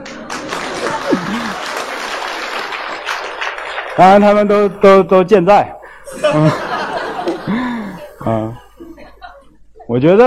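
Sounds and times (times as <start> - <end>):
laughter: 0.0 - 3.4, 5.8 - 9.8
audience applause: 0.0 - 4.8, 6.7 - 8.2
speech: 4.0 - 6.6, 9.9 - 10.2.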